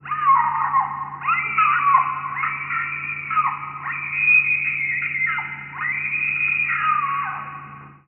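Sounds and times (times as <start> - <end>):
person screaming: 0.0 - 7.8.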